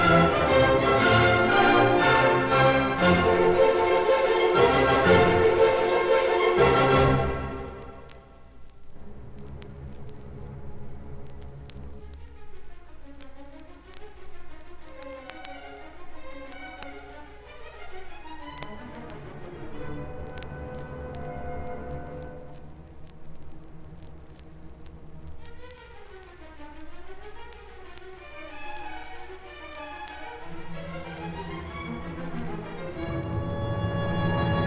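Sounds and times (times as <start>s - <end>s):
allegro classical piece: 0.0s - 8.0s, 12.7s - 22.5s, 25.6s - 34.6s.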